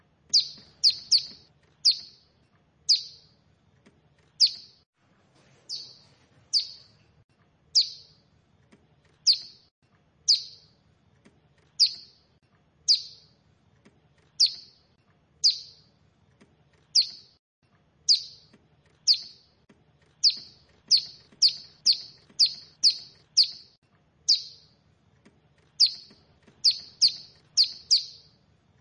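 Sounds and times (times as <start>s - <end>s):
bar-winged prinia giving high sharp down-slurred chirps: 0.3s - 2.3s, 2.9s - 3.4s, 4.3s - 4.8s, 5.7s - 7.0s, 7.7s - 8.2s, 9.2s - 10.8s, 11.7s - 13.4s, 14.3s - 15.9s, 16.9s - 17.4s, 18.0s - 24.8s, 25.7s - 28.8s.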